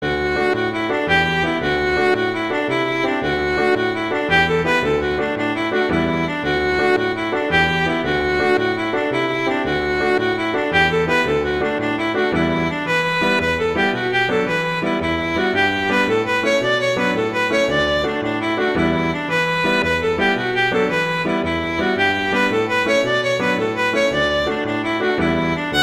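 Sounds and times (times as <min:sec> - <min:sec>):
jig tune: 0:00.0 - 0:25.8.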